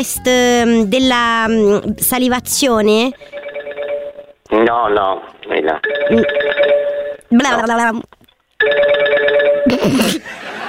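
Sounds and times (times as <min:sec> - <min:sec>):
speech: 0:00.0 - 0:03.4, 0:04.5 - 0:10.4
telephone ringing: 0:03.2 - 0:04.4, 0:05.8 - 0:07.3, 0:08.6 - 0:09.8
laughter: 0:09.7 - 0:10.6.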